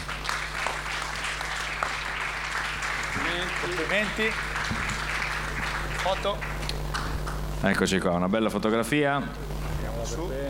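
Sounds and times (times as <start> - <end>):
applause: 0.0 - 7.4
speech: 3.4 - 4.8, 6.0 - 6.5, 7.6 - 10.4.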